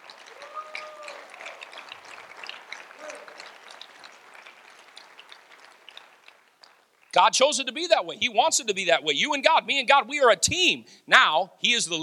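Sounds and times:
audience clapping hands: 0.0 - 7.9
speech: 7.2 - 12.0.

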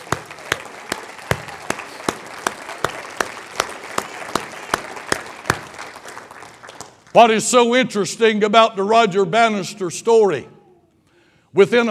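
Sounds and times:
audience applause: 0.0 - 7.1
speech: 7.1 - 10.6, 11.6 - 11.8.

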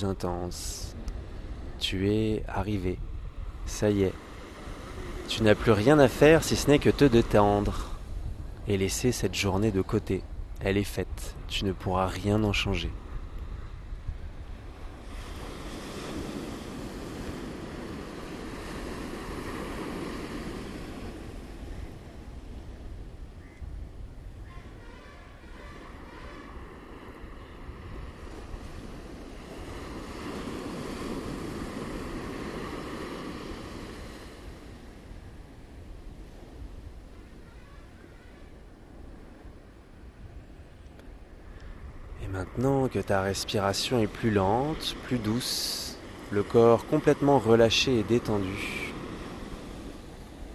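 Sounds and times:
speech: 0.0 - 1.0, 1.8 - 3.1, 3.7 - 4.3, 5.3 - 7.9, 8.7 - 13.0, 43.0 - 48.9
water waves rolling in and washing out: 0.0 - 50.5
wind: 0.0 - 50.5.

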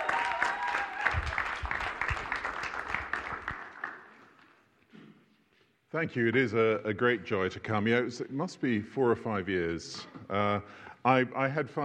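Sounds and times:
audience applause welcoming a guest speaker: 0.0 - 4.3
speech: 6.0 - 11.8.

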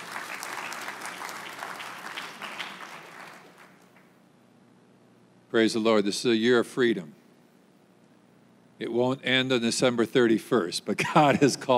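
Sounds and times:
audience applause: 0.0 - 4.1
speech: 5.5 - 7.2, 8.8 - 11.7.

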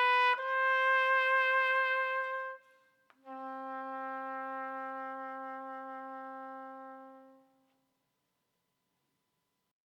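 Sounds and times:
trumpet playing a sarabande: 0.0 - 7.8.

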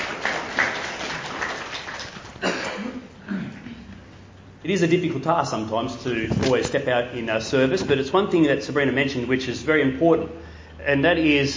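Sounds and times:
audience applause: 0.0 - 2.4
speech: 4.7 - 11.5.

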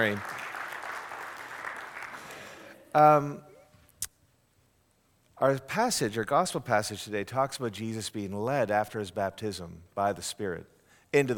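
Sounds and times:
speech: 0.0 - 0.4, 2.9 - 3.5, 5.4 - 11.3
group of people applauding: 0.0 - 2.8.

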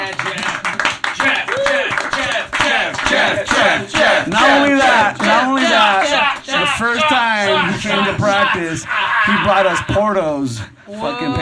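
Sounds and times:
audience round of applause: 0.0 - 7.6
laughter: 5.4 - 10.6
speech: 8.2 - 11.3.

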